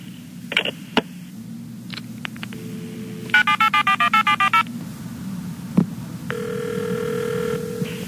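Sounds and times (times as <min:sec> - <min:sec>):
low hum: 0:00.0 - 0:08.0
electronic telephone ringing tone: 0:02.6 - 0:04.7, 0:06.3 - 0:08.0
telephone touch-tone dialing beeps: 0:03.3 - 0:04.7.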